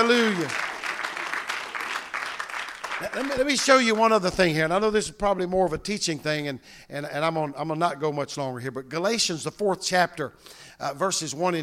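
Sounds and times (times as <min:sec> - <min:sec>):
speech: 0:00.0 - 0:00.7, 0:03.0 - 0:11.6
audience clapping: 0:00.0 - 0:04.2.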